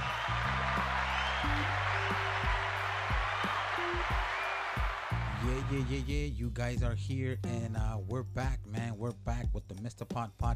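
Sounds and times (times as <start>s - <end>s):
applause sound effect: 0.0s - 6.1s
speech: 5.7s - 10.5s.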